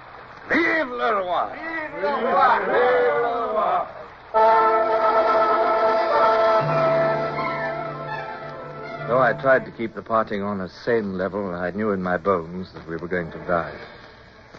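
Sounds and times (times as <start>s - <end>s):
speech: 0.5s - 4.6s, 9.1s - 14.0s
crowd cheering: 1.9s - 9.9s.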